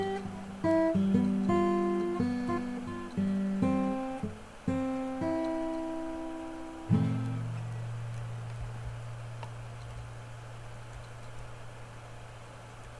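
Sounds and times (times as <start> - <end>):
guitar playing: 0.0 - 10.3.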